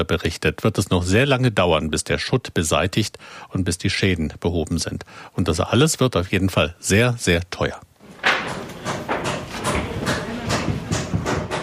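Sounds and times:
speech: 0.0 - 8.6
workers hammering on cathedral roof: 8.0 - 11.6.

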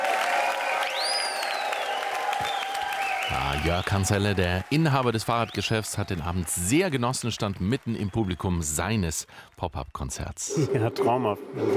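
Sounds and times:
audience applause at pop-up concert: 0.0 - 10.3
shrill sliding whistle: 0.9 - 3.4
speech: 3.3 - 11.7.

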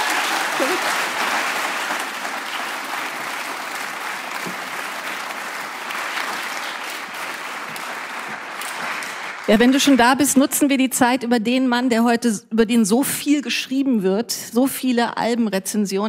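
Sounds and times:
audience applause: 0.0 - 10.4
speech: 9.5 - 16.0.

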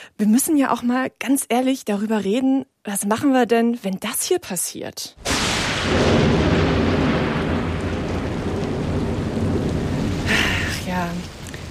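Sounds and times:
speech: 0.2 - 6.4
heavy rain: 5.2 - 11.6
sharp crackle: 5.2 - 11.6
thunder: 5.2 - 11.6.

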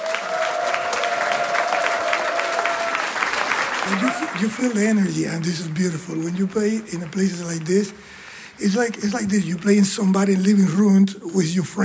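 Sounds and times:
audience applause: 0.0 - 8.0
speech: 3.9 - 11.8.

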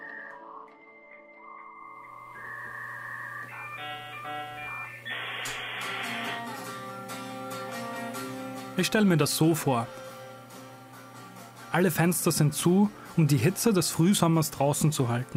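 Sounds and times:
dial-up modem connection tone: 1.8 - 6.6
speech: 8.8 - 10.0, 11.7 - 15.3.

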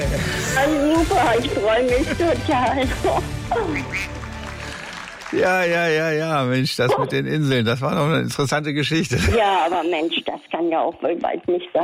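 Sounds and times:
speech: 0.1 - 4.2, 5.3 - 11.8
duck quacking: 3.6 - 4.1.

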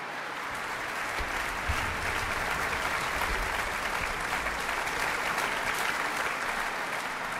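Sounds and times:
concert audience applause: 0.0 - 7.3.

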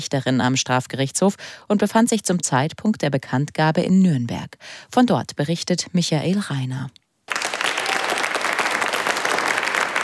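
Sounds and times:
speech: 0.0 - 7.0
audience applause in a courtroom: 7.3 - 10.0.

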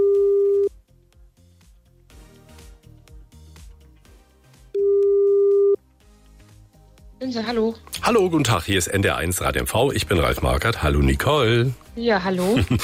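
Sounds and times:
telephone ringback tone on an outgoing call: 0.0 - 0.7, 4.8 - 5.8
soft music: 0.0 - 12.8
speech: 7.2 - 12.8.

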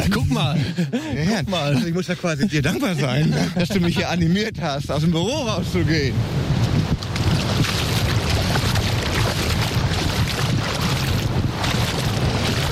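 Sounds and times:
laughter: 0.0 - 4.4
speech: 0.0 - 6.5
wind buffeting the microphone: 3.3 - 12.6
sea water rushing at a sandy island beach: 6.1 - 12.6.

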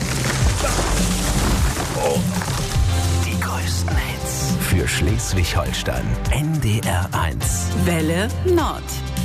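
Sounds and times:
tree falling and crashing down: 0.0 - 3.9
speech: 5.1 - 9.1.

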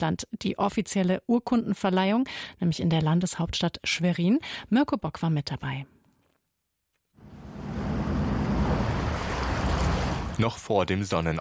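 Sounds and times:
speech: 0.0 - 6.0, 10.4 - 11.4
rushing wash of sea water: 7.2 - 10.4
small fishing boat motor on the sea: 7.2 - 10.4
wind: 7.2 - 10.4.

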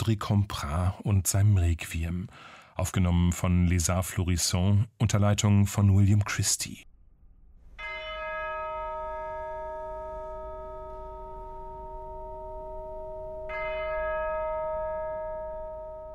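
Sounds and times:
speech: 0.0 - 6.9
church bell strokes: 7.6 - 16.1.

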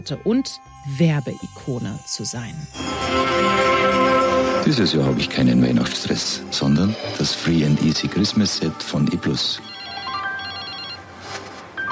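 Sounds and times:
speech: 0.0 - 9.7
telephone electronic ringtone: 9.2 - 11.9.

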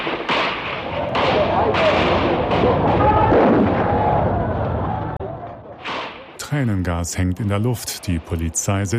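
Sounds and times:
police gunfire at protest: 0.0 - 4.0, 5.8 - 6.4
speech: 6.5 - 8.9.

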